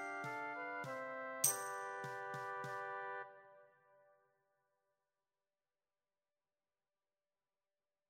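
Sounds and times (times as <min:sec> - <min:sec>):
pandero frame drum: 0:00.0 - 0:02.9.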